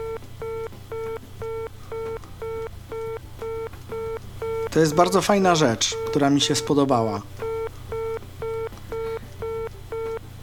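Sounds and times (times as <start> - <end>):
telephone line signal beeps from a handset: 0.0 - 5.2, 5.8 - 6.8, 7.4 - 10.4
low hum: 0.0 - 10.4
speech: 4.7 - 7.4.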